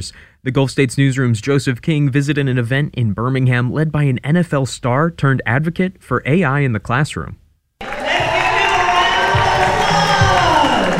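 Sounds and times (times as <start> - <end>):
speech: 0.0 - 8.0
middle school students shouting and cheering: 7.8 - 10.9.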